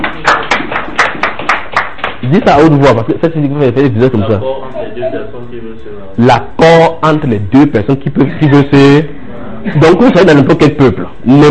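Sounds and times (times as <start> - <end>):
audience applauding for the speaker: 0.0 - 2.4
speech: 2.3 - 11.5.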